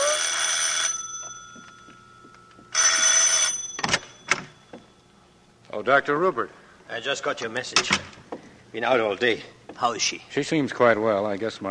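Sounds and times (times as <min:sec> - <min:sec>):
bell ringing: 0:00.0 - 0:05.0
speech: 0:05.8 - 0:08.1, 0:08.7 - 0:11.7.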